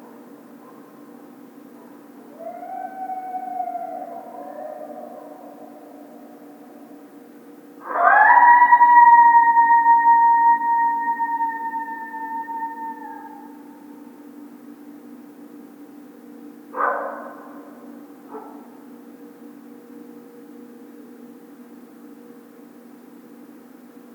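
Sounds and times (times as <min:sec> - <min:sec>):
coyote howling: 0:02.3 - 0:07.0, 0:07.8 - 0:13.9.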